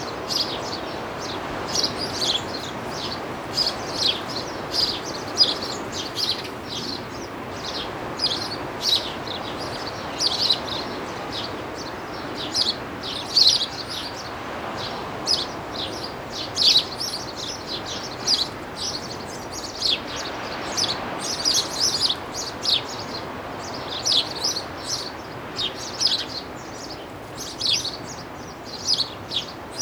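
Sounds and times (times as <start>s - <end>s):
animals in a seaside garden: 0.0s - 10.6s
birds in a seaside garden: 0.0s - 29.8s.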